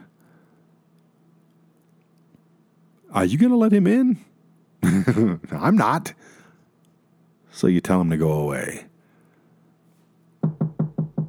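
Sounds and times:
speech: 3.1 - 4.3, 5.0 - 6.4, 7.5 - 8.9
laughter: 4.8 - 5.7
knocking on a door: 10.4 - 11.2.

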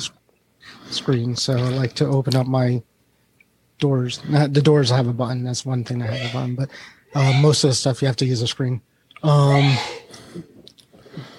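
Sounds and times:
speech: 1.0 - 2.9, 3.8 - 10.5
sneeze: 9.5 - 10.2.

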